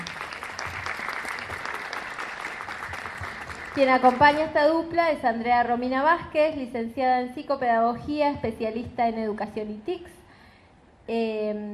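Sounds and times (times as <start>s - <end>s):
crowd applause: 0.0s - 4.2s
speech: 3.8s - 10.2s, 11.1s - 11.7s.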